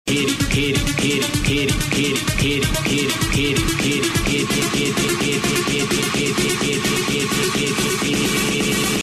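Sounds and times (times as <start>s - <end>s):
hip hop music: 0.1s - 9.0s.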